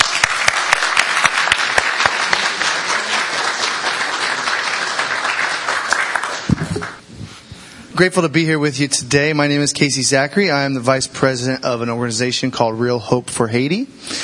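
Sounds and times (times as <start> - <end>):
audience applause welcoming a speaker: 0.0 - 7.0
speech: 8.0 - 14.2.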